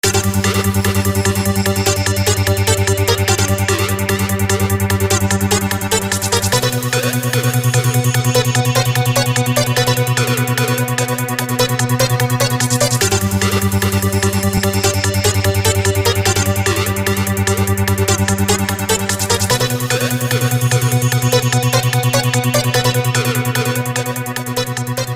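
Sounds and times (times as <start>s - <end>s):
thinking time music: 0.0s - 25.1s.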